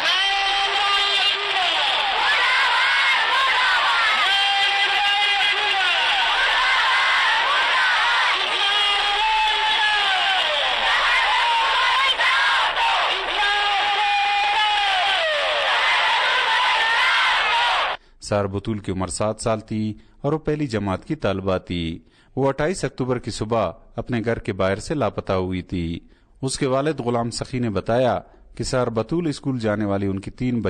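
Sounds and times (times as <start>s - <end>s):
protesters and children chanting slogans at a demonstration outside the Balochistan police chief's office: 0.0s - 18.0s
speech: 18.3s - 30.6s.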